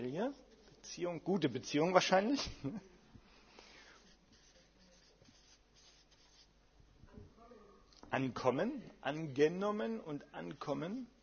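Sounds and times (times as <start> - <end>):
speech: 0.0 - 2.9, 8.1 - 11.2
pen scratching on paper writing by hand: 4.0 - 6.5.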